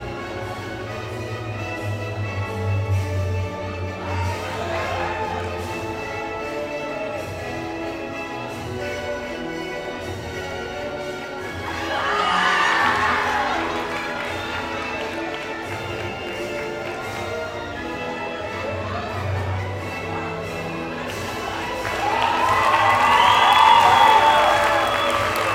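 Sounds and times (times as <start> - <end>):
music at a presentation: 0.0 - 25.5
laughter: 3.9 - 6.3, 11.6 - 17.7, 18.6 - 25.5
audience reacting and giving an ovation: 11.6 - 17.2, 21.1 - 25.5.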